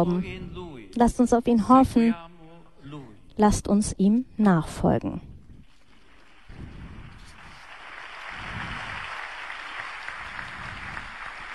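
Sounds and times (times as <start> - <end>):
speech: 0.0 - 2.2, 2.9 - 5.3
applause for the sermon at outdoor mass on Piazza Bartolo Longo: 6.0 - 11.5.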